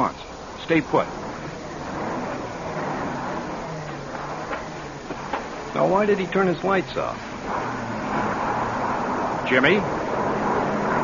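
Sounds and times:
speech: 0.0 - 1.2, 5.7 - 7.9, 9.5 - 10.0
truck turning around on narrow road: 0.0 - 11.0.

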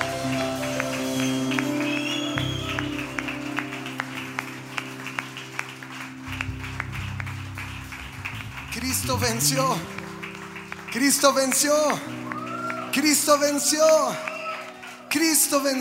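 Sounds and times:
sustained droning instrumental chords: 0.0 - 12.3
audience clapping in a steady rhythm: 0.0 - 15.7
speech: 9.1 - 9.9, 10.9 - 12.3, 13.0 - 14.3, 15.1 - 15.7.

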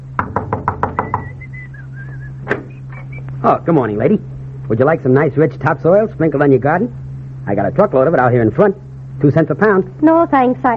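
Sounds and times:
low hum: 0.0 - 10.7
knocking on a door: 0.2 - 1.4
high warbling whistle: 1.0 - 3.3
speech: 3.4 - 10.7.

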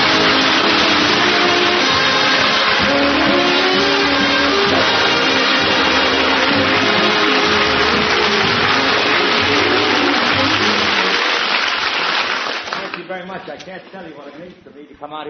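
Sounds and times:
band playing sustained brassy chords: 0.0 - 11.6
crowd clapping: 0.0 - 14.2
speech: 15.0 - 15.2.

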